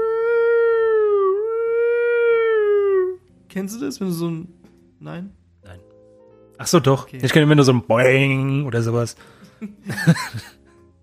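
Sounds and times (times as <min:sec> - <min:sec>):
voice imitating a siren: 0:00.0 - 0:03.2
speech: 0:03.6 - 0:05.8, 0:06.6 - 0:10.6
laughter: 0:09.6 - 0:10.6.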